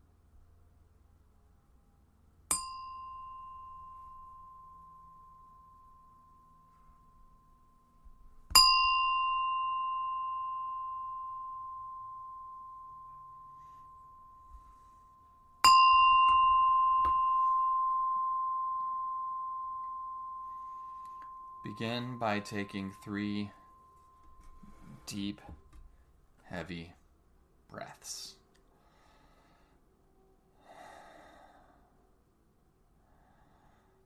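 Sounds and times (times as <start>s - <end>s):
bell ringing: 2.5s - 25.3s
speech: 21.6s - 23.6s, 25.1s - 25.6s, 26.5s - 27.0s, 27.7s - 28.4s.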